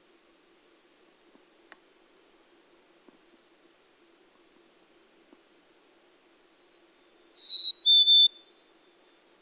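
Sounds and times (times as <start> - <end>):
chickadee two-note whistle: 7.3 - 8.5.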